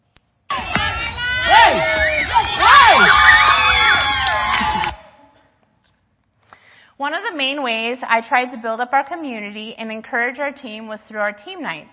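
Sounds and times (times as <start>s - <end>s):
children shouting and cheering during water games: 0.5s - 5.2s
speech: 7.4s - 11.9s.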